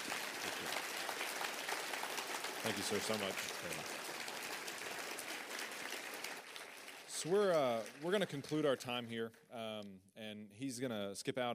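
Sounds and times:
audience applause: 0.0s - 9.1s
speech: 2.6s - 4.1s, 7.2s - 11.5s.

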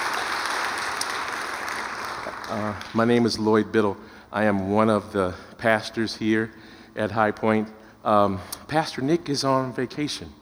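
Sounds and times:
audience applause: 0.0s - 3.2s
speech: 2.5s - 10.4s.

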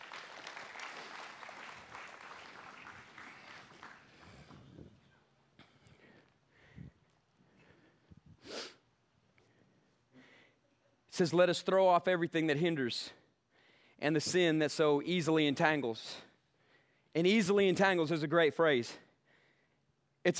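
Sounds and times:
hand clapping: 0.0s - 4.7s
speech: 11.2s - 13.2s, 14.0s - 16.3s, 17.2s - 19.0s.

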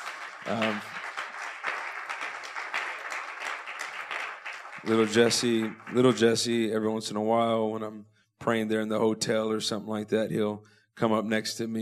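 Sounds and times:
audience applause: 0.0s - 6.7s
speech: 0.4s - 0.9s, 4.8s - 11.8s.

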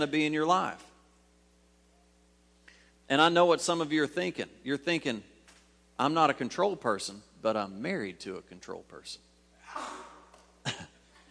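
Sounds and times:
speech: 0.0s - 0.9s, 3.1s - 5.3s, 6.0s - 10.8s
hiss: 0.0s - 11.2s
audience member sneezing: 9.6s - 11.0s.

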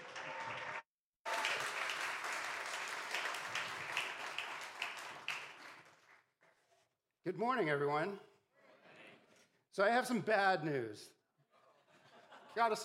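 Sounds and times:
crowd applause: 0.0s - 6.2s
speech: 7.3s - 8.3s, 9.8s - 11.2s, 12.5s - 12.8s
laughter: 11.5s - 12.8s.

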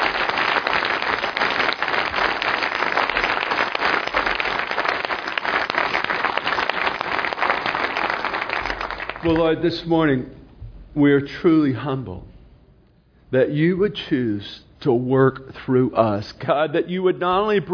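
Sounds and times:
audience applauding: 0.0s - 9.6s
speech: 9.3s - 10.4s, 11.0s - 12.3s, 13.3s - 17.7s.

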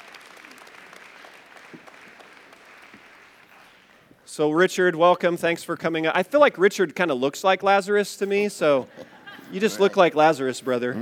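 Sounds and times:
audience applause for a guest coming up on stage: 0.0s - 3.9s
speech: 4.4s - 10.9s
laughter: 8.3s - 10.9s.

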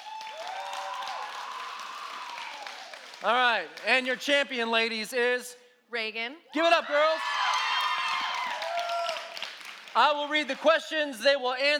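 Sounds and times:
whooping and cheering: 0.0s - 3.0s, 6.8s - 9.4s
audience applause: 0.0s - 3.8s, 7.5s - 10.0s
speech: 3.2s - 7.4s, 10.0s - 11.7s.

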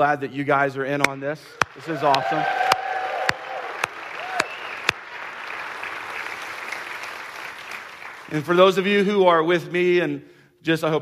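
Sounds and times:
speech: 0.0s - 2.7s, 8.3s - 10.9s
audience cheering: 1.5s - 8.3s.

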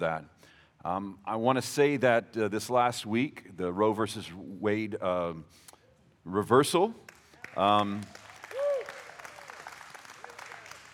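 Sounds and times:
speech: 0.0s - 8.2s
audience applauding: 7.1s - 10.9s.

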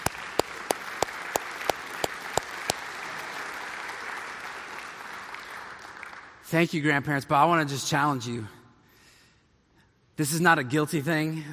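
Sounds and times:
audience clapping: 0.0s - 6.5s
speech: 6.5s - 8.6s, 10.2s - 11.5s.

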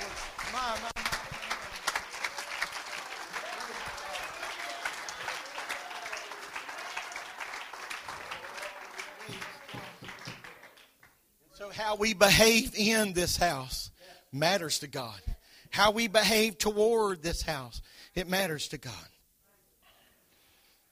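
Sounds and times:
audience clapping hands: 0.0s - 11.2s
speech: 11.8s - 19.1s.

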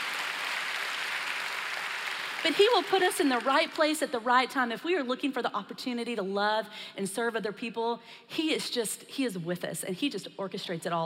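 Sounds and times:
audience clapping: 0.0s - 3.9s
speech: 2.4s - 11.0s.

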